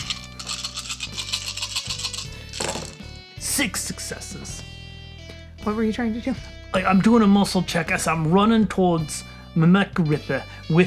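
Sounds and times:
handful of dice rattling: 0.0 - 3.0
speech: 3.6 - 4.7, 5.6 - 10.8.

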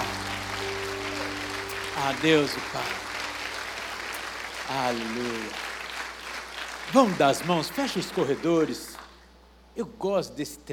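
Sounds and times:
low sustained tones: 0.0 - 5.2
audience applauding: 0.0 - 9.2
speech: 2.0 - 3.1, 4.7 - 5.7, 6.9 - 8.9, 9.8 - 10.7.

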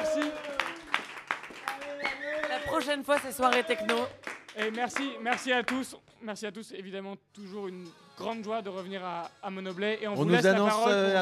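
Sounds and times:
audience applause: 0.0 - 5.9
speech: 2.8 - 11.1.

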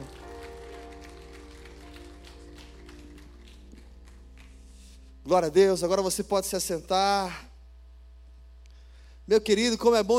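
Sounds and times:
audience applauding: 0.0 - 5.1
speech: 5.3 - 7.5, 9.3 - 10.1.

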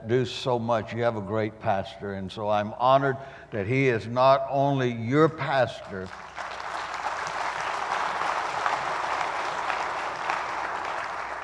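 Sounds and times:
speech: 0.0 - 6.5
audience clapping: 6.0 - 11.4.

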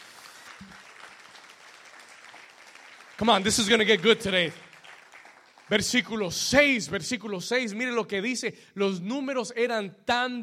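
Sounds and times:
audience applauding: 0.0 - 6.3
speech: 3.2 - 4.6, 5.7 - 10.4.

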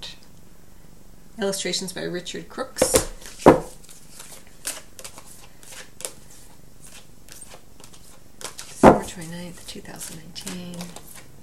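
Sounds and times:
speech: 1.4 - 3.1, 9.2 - 11.1
Astrology Reading Cards deck shuffled and drawn: 2.8 - 11.4.

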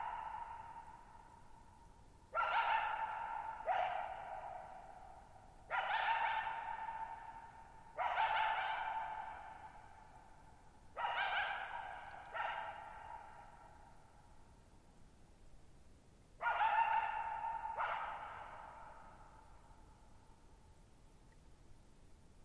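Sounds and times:
coyote barking: 0.0 - 1.1, 2.4 - 5.0, 5.7 - 10.0, 11.0 - 13.8, 16.4 - 19.3.

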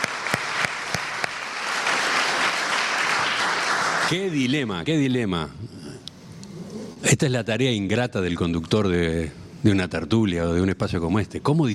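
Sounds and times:
audience applause: 0.0 - 4.4
speech: 4.1 - 5.8, 7.0 - 11.7.

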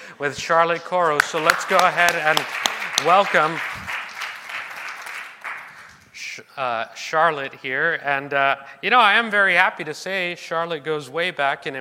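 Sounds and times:
speech: 0.2 - 3.8, 6.6 - 11.7
audience applause at a church gathering: 1.2 - 6.0.

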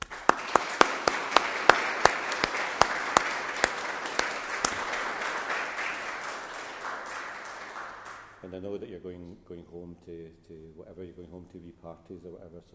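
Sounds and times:
crowd applause: 0.0 - 8.4
speech: 8.5 - 12.7.

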